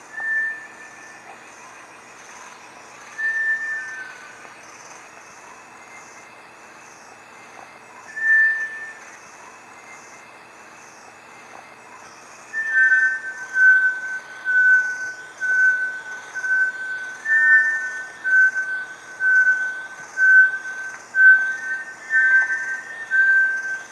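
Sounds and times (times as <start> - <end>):
Bartlett's tinamou calling with long pure whistled notes: 0.2 - 1.1, 3.2 - 4.3, 8.2 - 9.0, 12.6 - 23.9.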